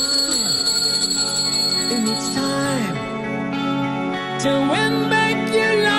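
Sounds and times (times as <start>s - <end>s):
bell ringing: 0.0s - 3.4s
speech: 4.4s - 5.8s.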